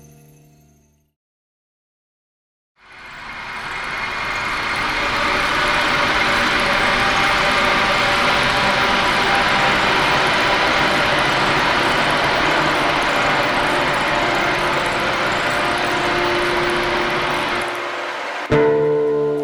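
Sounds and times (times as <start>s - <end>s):
Takataka cricket chirping: 2.9s - 18.1s
acoustic guitar playing: 4.5s - 19.3s.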